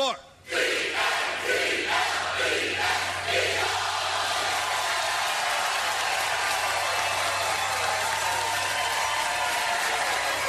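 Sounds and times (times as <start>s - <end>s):
crowd chanting: 0.5s - 6.1s
crowd cheering: 0.6s - 10.4s.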